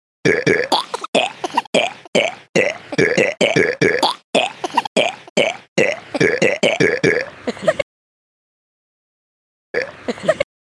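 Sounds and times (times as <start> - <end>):
person burping: 0.3 - 7.3, 9.8 - 10.0.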